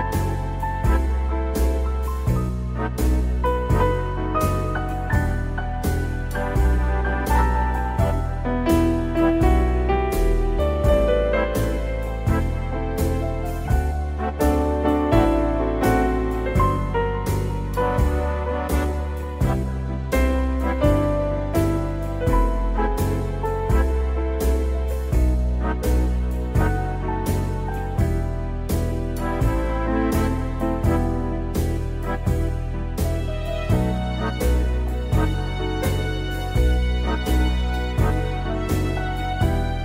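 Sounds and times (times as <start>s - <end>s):
piano cover: 0.0s - 39.8s.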